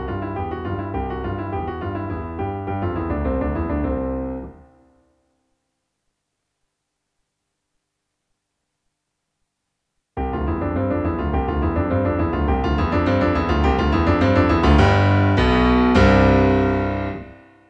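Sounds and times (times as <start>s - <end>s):
intermediate piano: 0.0s - 5.1s, 10.2s - 17.6s.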